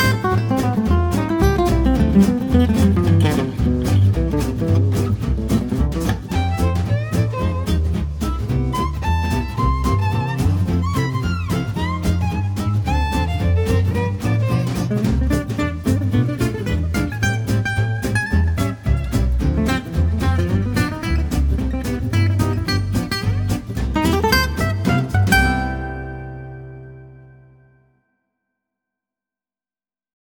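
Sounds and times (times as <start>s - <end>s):
fast music: 0.0s - 26.4s.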